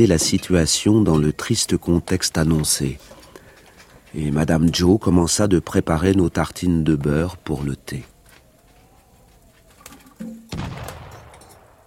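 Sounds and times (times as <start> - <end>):
speech: 0.0 - 3.2, 4.1 - 8.1
faint rustling: 0.0 - 5.0, 7.4 - 10.5
cannon shot fired to signal an escaped convict: 10.5 - 11.8.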